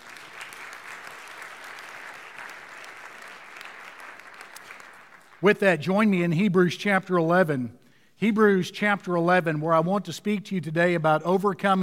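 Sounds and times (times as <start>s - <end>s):
audience applauding: 0.0s - 5.4s
speech: 5.4s - 11.8s.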